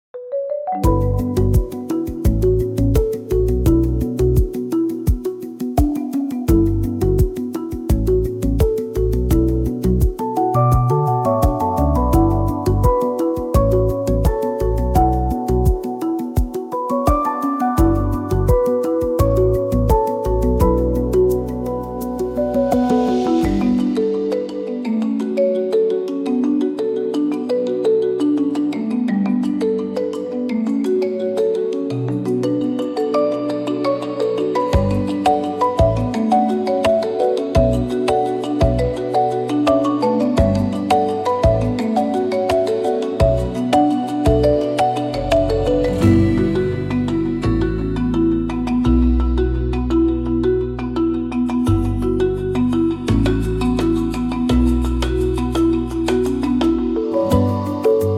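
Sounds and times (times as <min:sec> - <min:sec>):
subtle percussion: 0:00.2 - 0:58.1.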